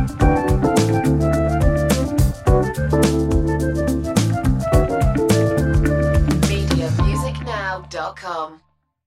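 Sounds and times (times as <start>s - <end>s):
acid jazz music: 0.0s - 8.2s.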